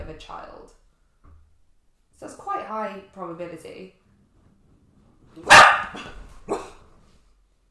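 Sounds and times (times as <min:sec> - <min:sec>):
speech: 0:00.1 - 0:00.8, 0:02.2 - 0:04.0, 0:05.4 - 0:06.2
dog barking: 0:05.4 - 0:06.8.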